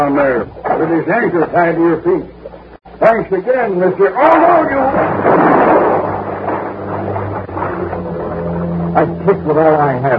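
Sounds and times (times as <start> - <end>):
speech: 0.0 - 2.4, 3.0 - 5.7, 9.0 - 10.1
single loud gunshot with rumbling tail: 4.9 - 7.8.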